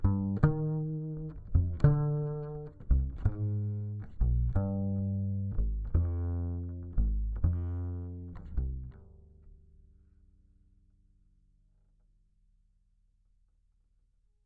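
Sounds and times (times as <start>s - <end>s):
bass guitar recorded by direct input: 0.0s - 11.6s.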